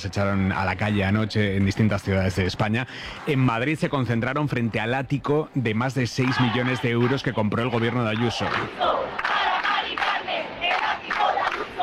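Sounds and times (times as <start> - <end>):
speech: 0.0 - 9.2
protest crowd shaking keys: 6.2 - 11.8.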